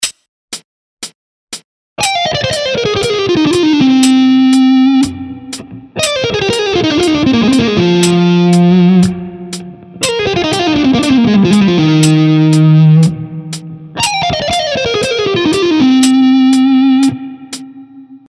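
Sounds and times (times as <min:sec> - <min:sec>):
speed development instrumental lick: 0:01.5 - 0:18.1.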